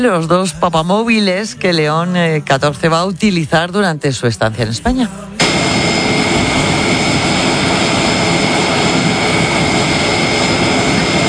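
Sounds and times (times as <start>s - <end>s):
speech: 0.0s - 5.7s
air force military transport plane landing in Madrid: 5.4s - 11.2s.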